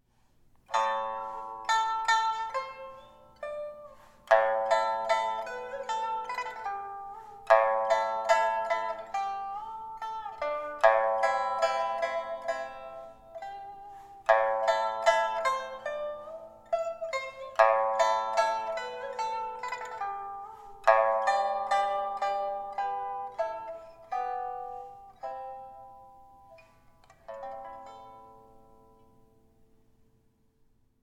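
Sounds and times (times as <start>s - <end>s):
pipa: 0.1s - 29.7s.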